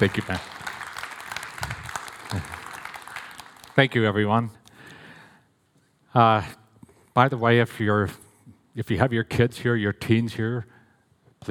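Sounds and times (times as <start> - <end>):
speech: 0.0 - 0.5, 2.3 - 2.6, 3.8 - 4.6, 6.1 - 6.6, 7.2 - 8.2, 8.8 - 10.8
audience applause welcoming a guest speaker: 0.0 - 4.1.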